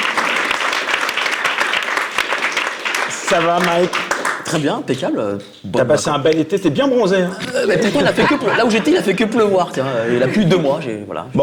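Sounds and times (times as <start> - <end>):
audience applause: 0.0 - 4.8
speech: 3.3 - 11.4
laughter: 7.4 - 10.9.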